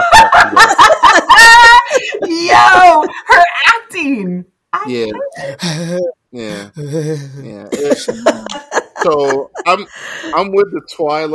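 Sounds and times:
laughter: 0.0s - 3.1s, 5.2s - 10.9s
speech: 4.9s - 11.3s
person imitating wheezy asthmatic breathing: 5.2s - 7.5s.

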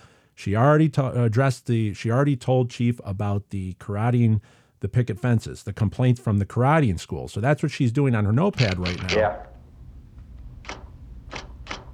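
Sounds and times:
speech: 0.4s - 9.5s
low steady hum: 8.6s - 11.9s
typewriter keys typing a shark attack report: 10.6s - 11.9s.

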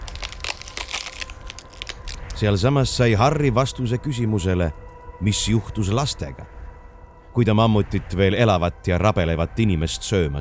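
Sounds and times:
thigh bones cracking under crushing pressure: 0.0s - 2.6s
speech: 2.4s - 6.6s, 7.4s - 10.4s.

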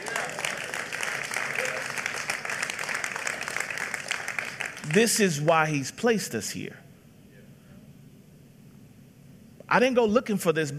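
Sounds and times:
audience clapping: 0.0s - 5.2s
speech: 4.9s - 6.8s, 9.7s - 10.7s.

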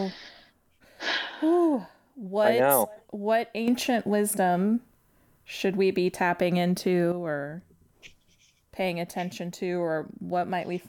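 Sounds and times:
speech: 0.0s - 0.3s, 1.4s - 4.9s, 5.5s - 7.7s, 8.8s - 10.8s
person taking a deep breath: 0.0s - 1.6s.

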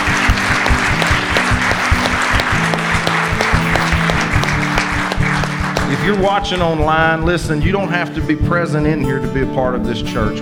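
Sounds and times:
audience applause: 0.0s - 6.6s
speech: 6.1s - 10.3s.

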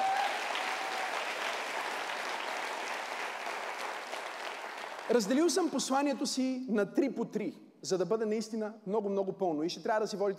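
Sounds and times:
audience applauding: 0.0s - 5.3s
speech: 5.1s - 10.3s.

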